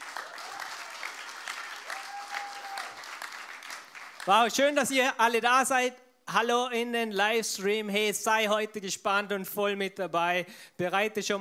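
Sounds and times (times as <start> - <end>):
audience applause: 0.0 - 4.4
speech: 4.2 - 11.3.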